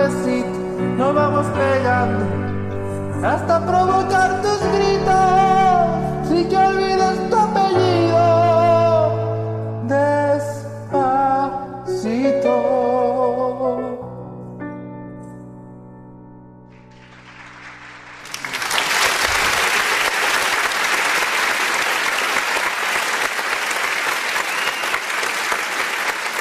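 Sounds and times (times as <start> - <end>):
music from a sung performance: 0.0 - 18.4
audience applause after a sung performance: 16.8 - 26.3.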